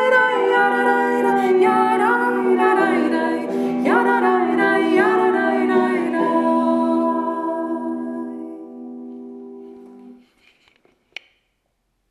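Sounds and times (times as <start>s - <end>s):
two-voice nigun singing: 0.0s - 9.1s.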